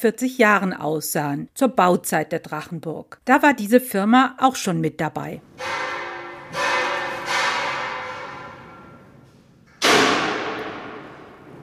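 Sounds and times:
speech: 0:00.0 - 0:05.8
craftsmen installing stained-glass lancet windows: 0:05.5 - 0:11.6.

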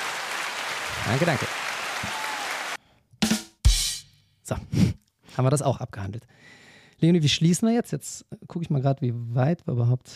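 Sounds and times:
applause sound effect from soundboard: 0:00.0 - 0:02.8
speech: 0:00.9 - 0:02.1, 0:04.5 - 0:10.1.

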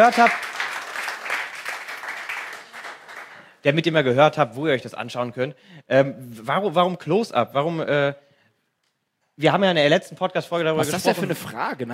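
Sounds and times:
speech: 0:00.0 - 0:00.5, 0:03.6 - 0:08.2, 0:09.4 - 0:11.9
audience applause: 0:00.0 - 0:03.5.

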